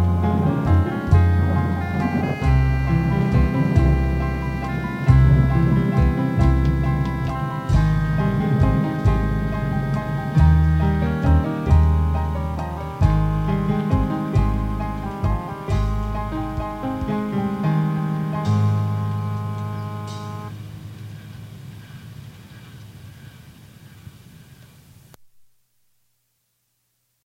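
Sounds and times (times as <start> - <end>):
waltz variations: 0.0 - 20.6.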